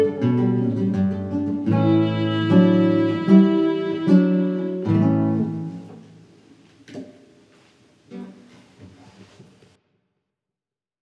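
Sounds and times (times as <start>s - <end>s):
instrumental music: 0.0s - 6.4s.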